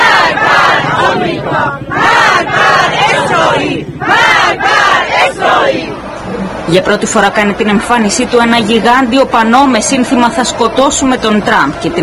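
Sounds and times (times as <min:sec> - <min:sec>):
roar of the crowd: 0:00.0 - 0:06.6
crowd chanting slogans in the street: 0:00.0 - 0:12.0
speech: 0:06.8 - 0:12.0.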